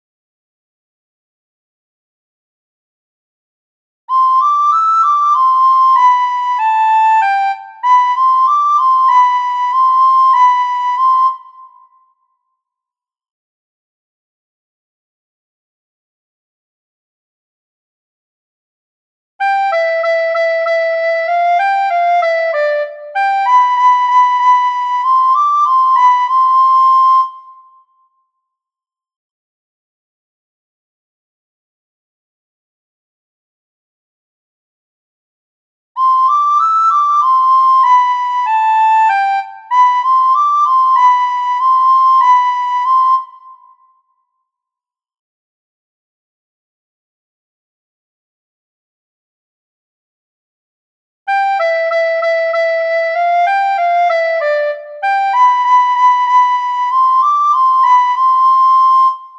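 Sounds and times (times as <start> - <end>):
recorder playing: 4.1 - 11.6, 19.4 - 27.5, 36.0 - 43.6, 51.3 - 59.3.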